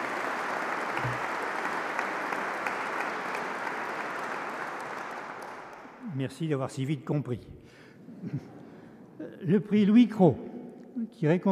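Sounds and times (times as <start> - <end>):
audience applause: 0.0 - 6.0
speech: 6.2 - 7.6, 9.5 - 10.4, 11.1 - 11.5.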